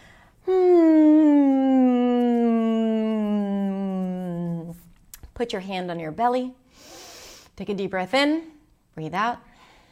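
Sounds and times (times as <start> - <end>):
humming: 0.4 - 4.8
speech: 5.4 - 6.9, 7.6 - 9.5.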